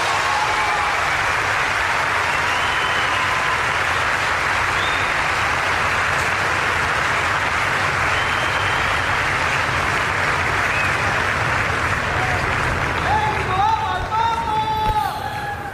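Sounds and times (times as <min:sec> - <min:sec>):
large audience applause: 0:00.0 - 0:15.7.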